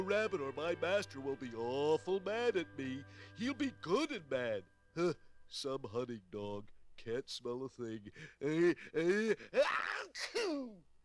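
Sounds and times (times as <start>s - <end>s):
speech: 0.0s - 10.9s
exaggerated cartoonish sneeze: 9.2s - 10.8s.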